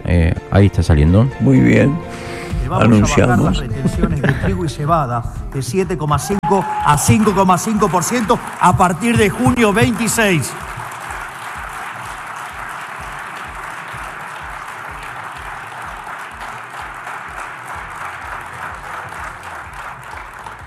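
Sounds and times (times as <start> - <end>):
speech: 0.1 - 10.8
laughter: 2.6 - 5.1
crowd applause: 6.3 - 20.6.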